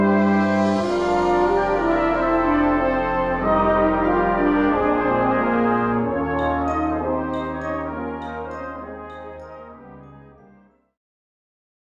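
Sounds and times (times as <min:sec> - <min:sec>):
shepherd's pipe playing a carol: 0:00.2 - 0:09.6.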